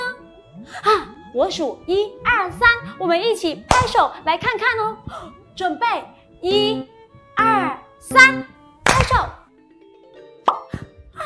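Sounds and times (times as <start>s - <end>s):
speech: 0.7s - 6.9s, 8.1s - 9.4s
bubble popping: 10.5s - 10.7s.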